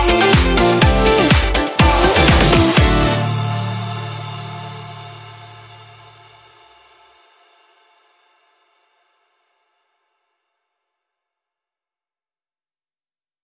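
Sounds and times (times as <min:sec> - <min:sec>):
instrumental beat without rap vocals: 0:00.0 - 0:06.3.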